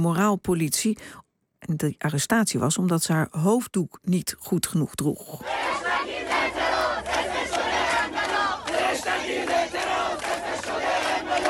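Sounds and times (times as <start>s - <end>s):
speech: 0.0s - 7.2s
student protesters chanting in the street: 5.4s - 11.4s.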